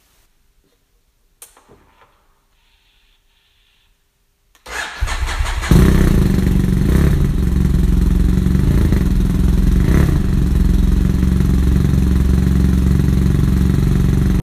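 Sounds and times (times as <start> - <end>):
BMW F800GS motorcycle engine racing: 4.7 - 14.4.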